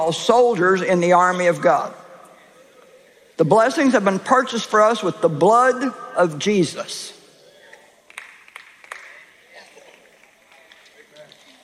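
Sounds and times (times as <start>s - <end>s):
speech: 0.0s - 2.0s, 3.4s - 7.2s
single hand clap: 8.1s - 9.3s.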